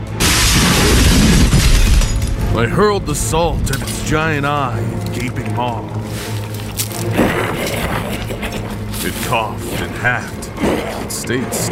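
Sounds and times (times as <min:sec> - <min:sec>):
window glass shattering: 0:00.2 - 0:02.6
speech: 0:02.6 - 0:06.3, 0:07.0 - 0:07.9, 0:09.0 - 0:11.7.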